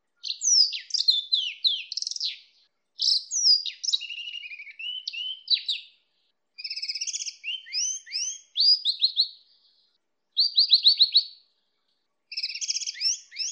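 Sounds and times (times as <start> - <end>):
greenfinch x canary hybrid song: 0.0 - 13.4.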